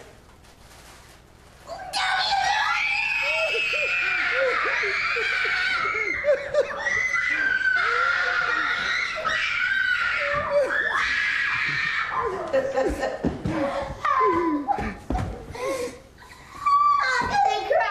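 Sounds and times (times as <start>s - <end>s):
children screaming excitedly opening Christmas presents: 1.7s - 12.6s, 16.3s - 17.7s
children laughing: 2.0s - 17.8s.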